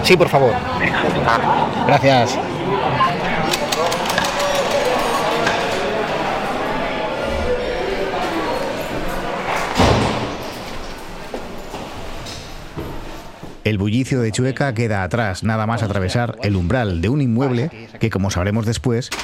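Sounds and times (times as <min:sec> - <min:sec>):
indistinct voices: 0:00.0 - 0:19.2
speech: 0:00.1 - 0:03.2, 0:13.7 - 0:19.2
heavy building door thud: 0:09.7 - 0:10.4.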